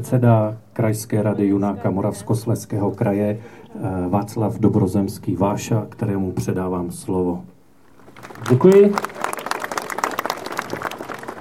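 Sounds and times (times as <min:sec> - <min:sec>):
speech: 0:00.0 - 0:07.5, 0:08.2 - 0:09.3
audience applause at a regional scout council meeting: 0:08.0 - 0:11.3.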